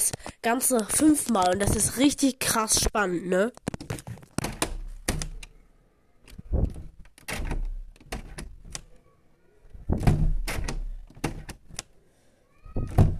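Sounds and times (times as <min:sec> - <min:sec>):
speech: 0:00.4 - 0:03.7
window being opened and closed: 0:03.7 - 0:05.6, 0:06.2 - 0:09.0, 0:09.7 - 0:11.9, 0:12.7 - 0:13.1.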